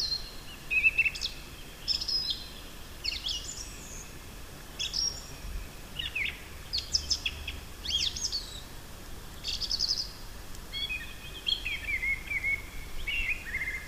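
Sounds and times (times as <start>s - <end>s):
Turdus philomelos: 0.0s - 13.8s.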